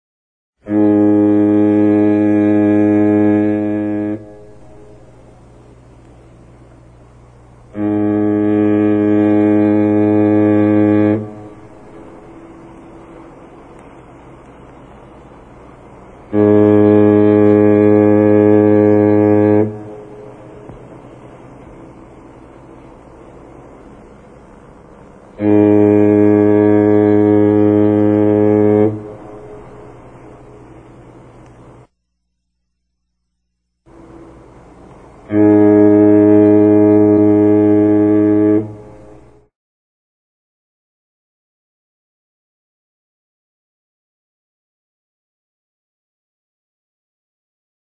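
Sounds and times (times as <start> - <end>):
steamship horn: 0.6 - 31.9, 33.9 - 39.5.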